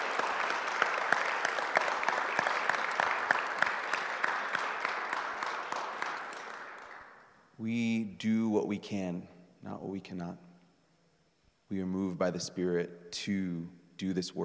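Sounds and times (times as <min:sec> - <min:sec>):
audience applause: 0:00.0 - 0:07.2
speech: 0:07.6 - 0:10.5, 0:11.7 - 0:14.4.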